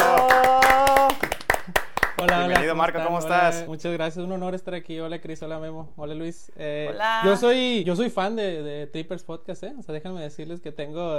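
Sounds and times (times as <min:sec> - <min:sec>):
applause for a guest: 0:00.0 - 0:03.4
speech: 0:02.2 - 0:11.1.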